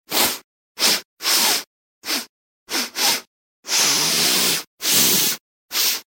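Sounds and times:
man inhaling through nose: 0:00.8 - 0:06.1.

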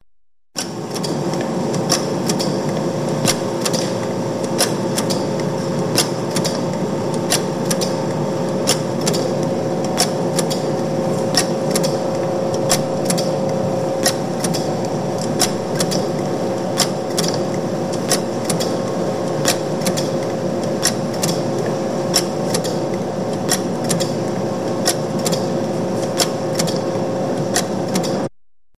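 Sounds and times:
tobacco factory cigarette production machine working: 0:00.6 - 0:28.3.

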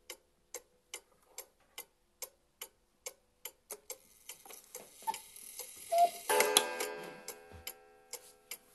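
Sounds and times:
cuckoo clock calling: 0:05.0 - 0:07.5.

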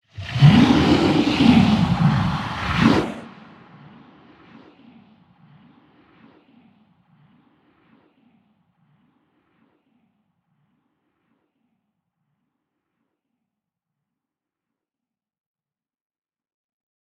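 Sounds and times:
horror monsters preparing for battle: 0:00.2 - 0:03.4.

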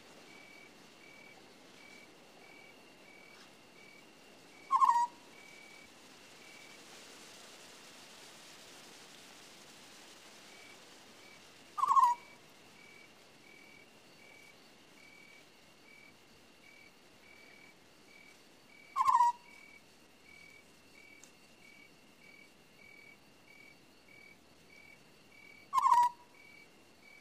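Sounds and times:
owl screeching: 0:04.7 - 0:05.2, 0:11.8 - 0:12.3, 0:19.0 - 0:19.5, 0:25.7 - 0:26.2.

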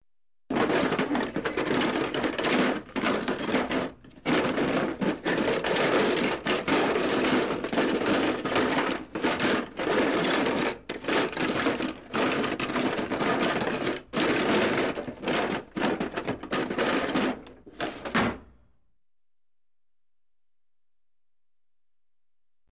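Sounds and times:
rattling while searching in a pull-out drawer: 0:00.5 - 0:18.5.

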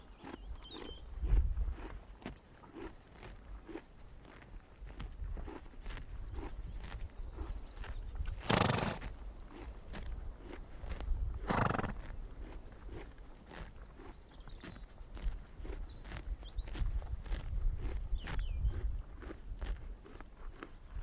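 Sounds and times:
pony munching grass: 0:00.0 - 0:21.0.

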